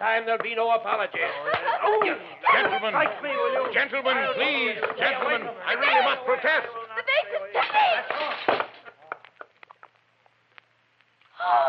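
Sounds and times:
speech: 0.0 - 8.6
laughter: 1.1 - 9.8
glass vase smashing on wooden floor: 8.0 - 8.9.

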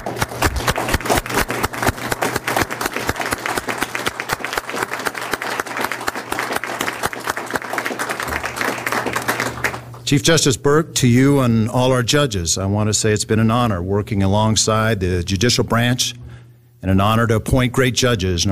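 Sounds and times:
audience applause: 0.0 - 10.0
speech: 10.1 - 16.2, 16.8 - 18.5.

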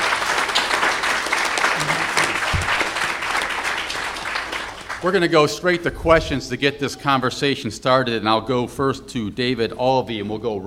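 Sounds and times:
audience round of applause: 0.0 - 5.3
speech: 5.0 - 10.6.

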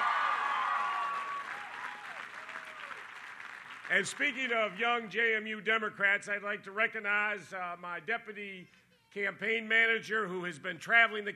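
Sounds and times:
crowd applause: 0.0 - 4.8
speech: 3.9 - 11.3.

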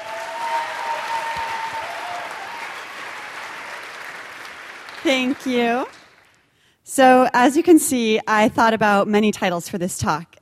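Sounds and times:
audience applause: 0.0 - 6.4
speech: 5.0 - 6.0, 6.9 - 10.3.

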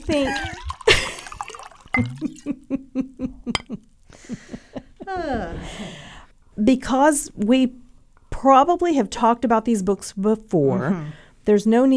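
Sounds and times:
wine being poured into a glass: 0.0 - 2.5
speech: 0.1 - 0.6, 2.0 - 3.8, 6.7 - 7.8, 8.4 - 11.9.

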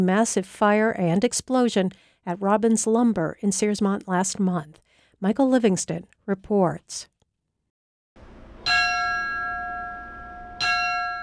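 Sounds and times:
speech: 0.0 - 7.1
bell rung for a firefighter's last alarm: 8.3 - 11.2.

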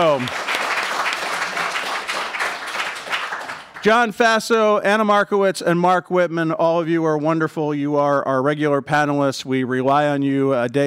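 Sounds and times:
speech: 0.0 - 0.6, 3.8 - 10.8
audience applause: 0.0 - 4.1.

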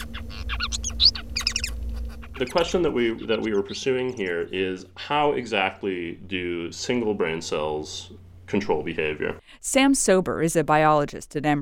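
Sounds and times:
Bengalese finch song: 0.0 - 5.0
steady low hum: 0.0 - 10.5
speech: 2.4 - 11.6.

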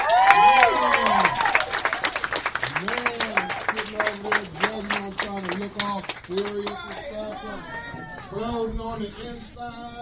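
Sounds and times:
voices whooping and cheering: 0.0 - 2.1, 7.1 - 8.4
audience applause for poets: 0.0 - 8.3
speech: 8.3 - 9.9.

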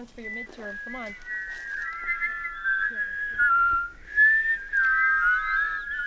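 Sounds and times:
speech: 0.0 - 1.7
several people whistling an imitation of a chickadee's song: 0.0 - 6.0.

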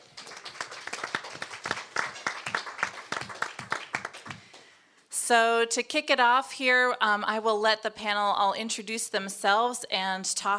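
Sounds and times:
audience applause: 0.0 - 4.7
speech: 5.3 - 10.5.

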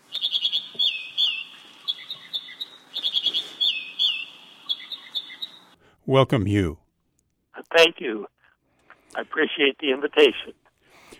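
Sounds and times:
American Dipper singing bubbling song: 0.1 - 5.8
speech: 6.1 - 6.8, 7.8 - 8.4, 9.2 - 10.6.

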